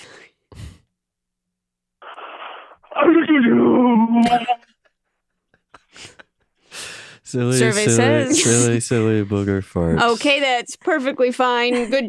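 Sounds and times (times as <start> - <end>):
voice imitating a sneeze: 2.4 - 4.6, 8.0 - 8.8
speech: 3.0 - 4.6, 7.3 - 12.0.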